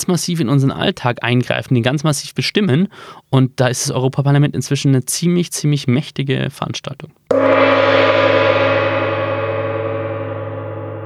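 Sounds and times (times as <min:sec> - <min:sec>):
speech: 0:00.0 - 0:08.4
gong strike: 0:07.3 - 0:11.0.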